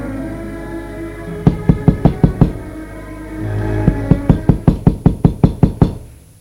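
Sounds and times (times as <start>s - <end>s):
knocking on a door: 1.5s - 2.6s, 3.9s - 6.0s.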